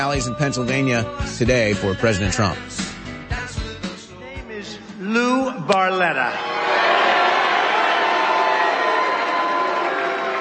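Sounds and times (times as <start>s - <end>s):
speech: 0.0s - 2.9s, 5.6s - 6.5s
raucous rally crowd cheering and shouting: 6.2s - 10.3s.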